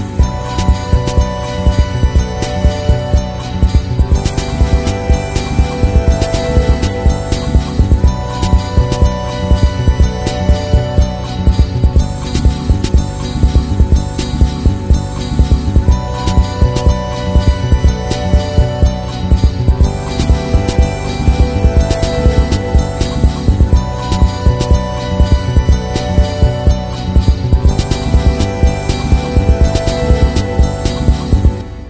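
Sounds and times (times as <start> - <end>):
tango drum rhythm: 0.2 - 31.6.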